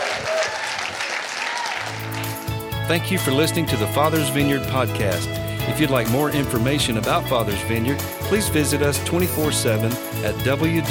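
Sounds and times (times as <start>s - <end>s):
audience applause: 0.0s - 2.6s
speech: 2.9s - 10.9s.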